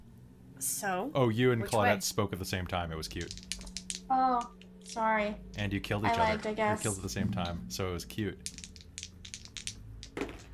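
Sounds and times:
speech: 0:00.6 - 0:03.5, 0:04.1 - 0:08.6
dice rolling: 0:03.0 - 0:06.3, 0:08.4 - 0:10.5.

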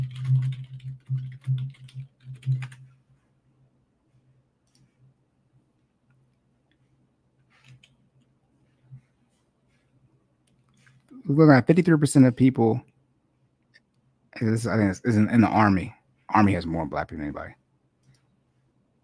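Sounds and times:
typing on a computer keyboard: 0:00.0 - 0:03.0
low steady hum: 0:00.0 - 0:19.0
speech: 0:11.3 - 0:12.9, 0:14.4 - 0:17.6.

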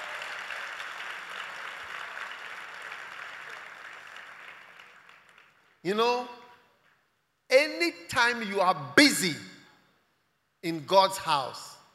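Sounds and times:
audience applause: 0:00.0 - 0:05.8
speech: 0:05.8 - 0:06.4, 0:07.6 - 0:09.5, 0:10.6 - 0:11.7.

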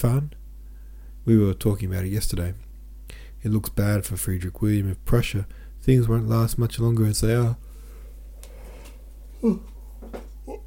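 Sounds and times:
speech: 0:00.0 - 0:00.4, 0:01.3 - 0:07.7, 0:09.4 - 0:10.2
low steady hum: 0:00.0 - 0:10.6
breathy vocal murmurs: 0:09.4 - 0:10.6
person yawning: 0:09.4 - 0:10.6.

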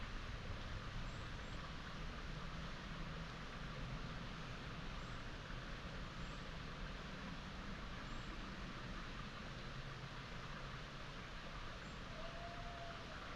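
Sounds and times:
stony stream rushing in upland meadows: 0:00.0 - 0:13.3.

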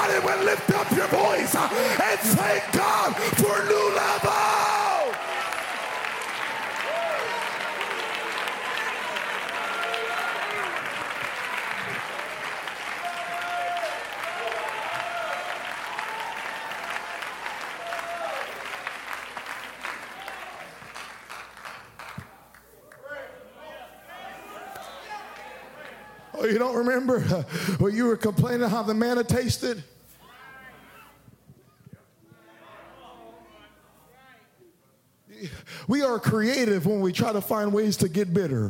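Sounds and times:
audience clapping hands: 0:00.0 - 0:23.1
speech: 0:00.3 - 0:03.7, 0:26.8 - 0:30.0, 0:35.9 - 0:38.6.

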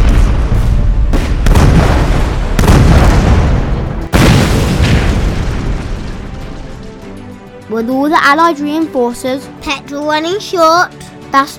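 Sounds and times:
heavy bomb explosions from bombing planes: 0:00.0 - 0:07.0
speech: 0:07.7 - 0:11.5.

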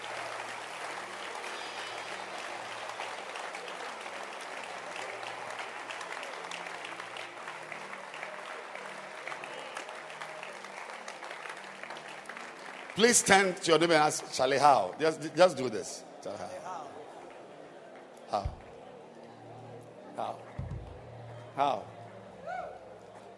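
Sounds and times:
audience clapping: 0:00.0 - 0:15.7, 0:17.1 - 0:18.8
speech: 0:13.0 - 0:16.6.

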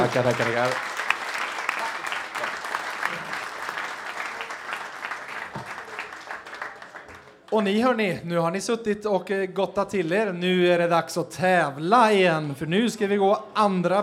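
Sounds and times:
audience applause: 0:00.0 - 0:07.6
speech: 0:00.1 - 0:01.0, 0:07.5 - 0:14.0.

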